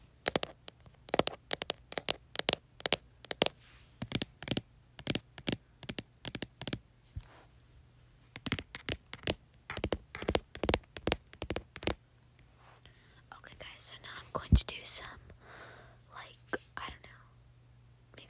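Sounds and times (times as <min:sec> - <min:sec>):
tapping on a laptop keyboard: 0:00.2 - 0:06.8, 0:08.4 - 0:12.0
speech: 0:13.9 - 0:15.3.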